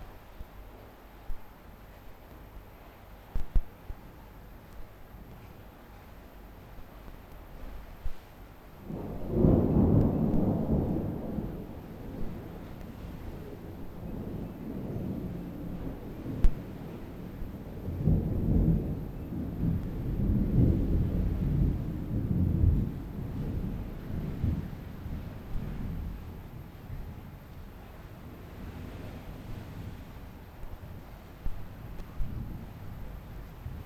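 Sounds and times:
thunderstorm in Curacao: 7.5s - 33.8s.

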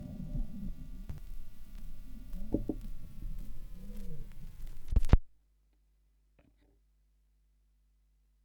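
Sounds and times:
vinyl record noise: 0.0s - 5.4s.

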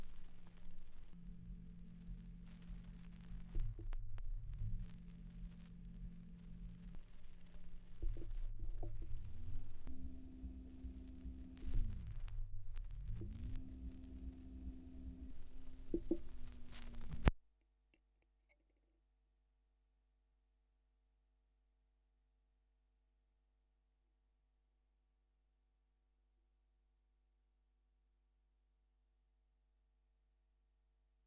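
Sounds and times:
78rpm gramophone record surface noise: 0.0s - 17.4s.

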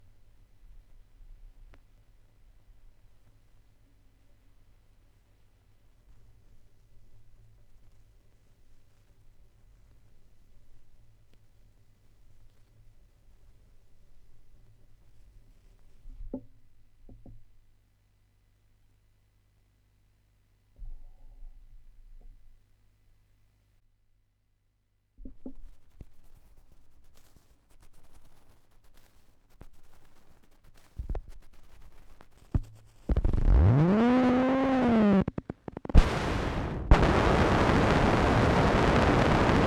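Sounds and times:
vinyl record noise: 30.2s - 39.6s.

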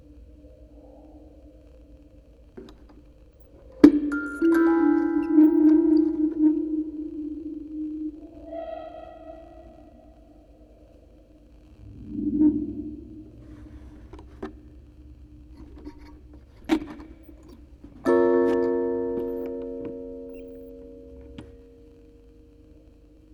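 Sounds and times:
quartet of music boxes playing: 3.4s - 7.0s, 17.3s - 22.2s.

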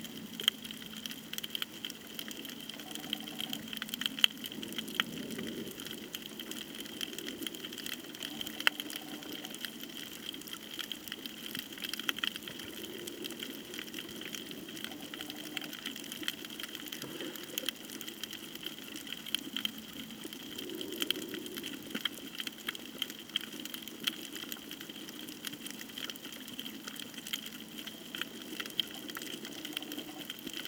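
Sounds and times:
snorkeling at Nang Yuan off Koh Tao: 0.0s - 30.6s.

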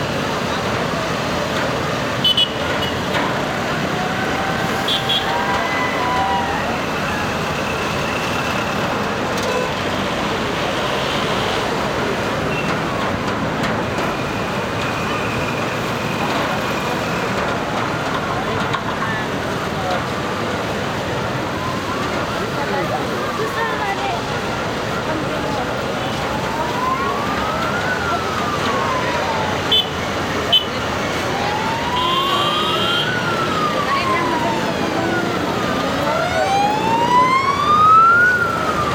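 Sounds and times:
street traffic in Kathmandu Nepal: 0.0s - 38.9s.

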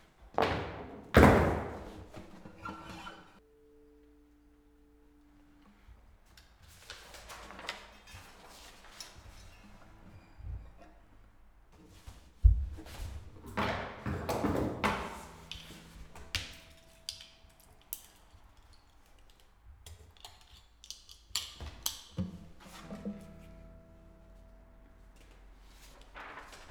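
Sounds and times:
background noise in Lichtenberg, Brandenburg: 0.0s - 26.7s.

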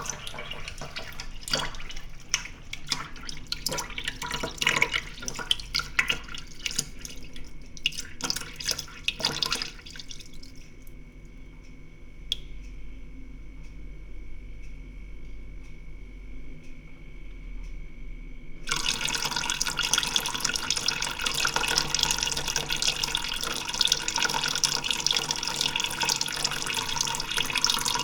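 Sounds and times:
water tap running in a cafe in Lisbon: 0.0s - 10.6s, 18.6s - 28.0s.

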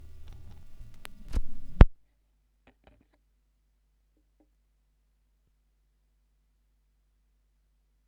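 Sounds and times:
vinyl record noise: 0.0s - 2.0s.

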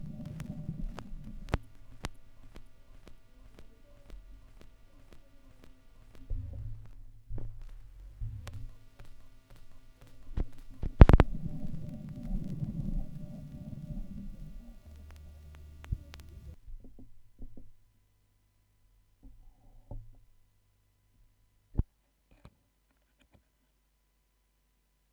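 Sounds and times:
vinyl record noise: 0.0s - 16.6s.

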